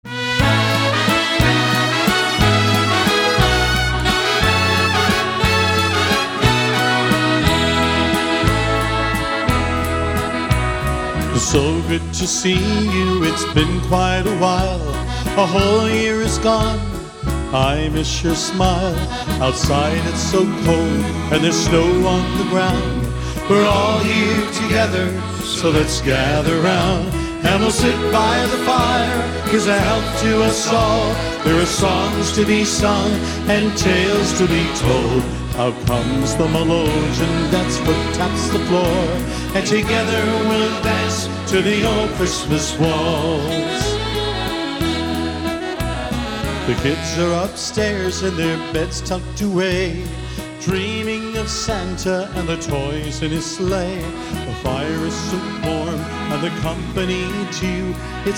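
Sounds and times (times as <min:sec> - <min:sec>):
festive waltz: 0:00.0 - 0:58.3.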